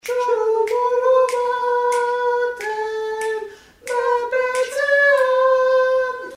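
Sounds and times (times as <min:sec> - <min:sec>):
sopranos singing: 0:00.0 - 0:06.3.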